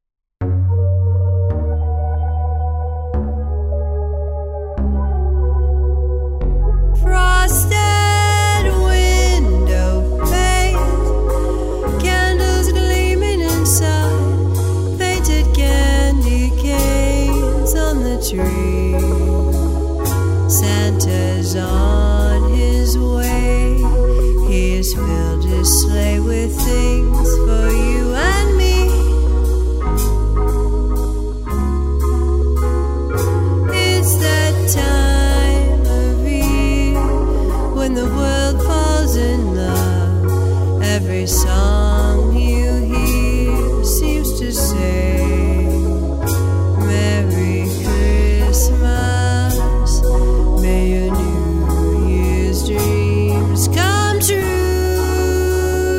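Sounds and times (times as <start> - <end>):
Christmas waltz music: 0.6 - 55.9.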